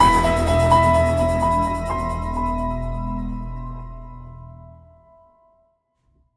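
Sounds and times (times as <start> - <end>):
musical stinger: 0.0 - 5.0.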